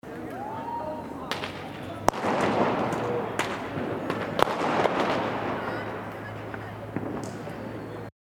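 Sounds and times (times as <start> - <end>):
New Year's Eve firecrackers banging: 1.1 - 8.1.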